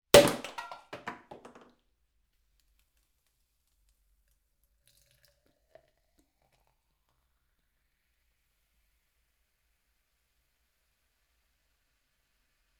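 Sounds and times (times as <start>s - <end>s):
champagne bottle uncorking: 0.2s - 1.6s.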